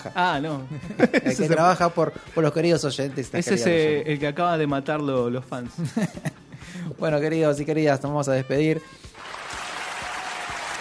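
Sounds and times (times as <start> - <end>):
speech: 0.0 - 9.1
laughter: 0.7 - 1.8, 5.8 - 6.7
applause: 9.2 - 10.8.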